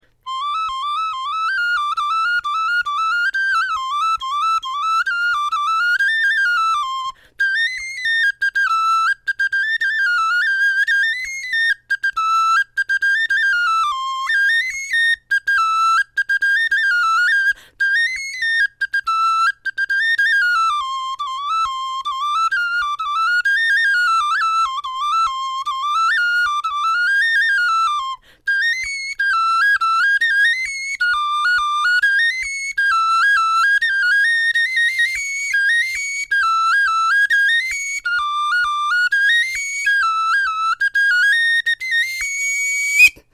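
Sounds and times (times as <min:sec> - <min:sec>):
bone flute melody: 0:00.0 - 0:43.3.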